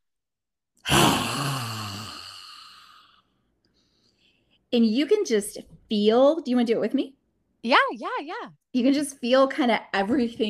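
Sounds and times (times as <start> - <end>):
Lion's Breath yoga exhale with tongue stuck out: 0.9 - 3.2
speech: 4.7 - 10.4.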